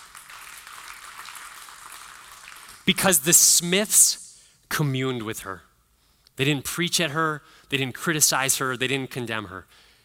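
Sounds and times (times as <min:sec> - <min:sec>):
audience clapping: 0:00.0 - 0:03.2
speech: 0:02.9 - 0:05.7, 0:06.4 - 0:09.9.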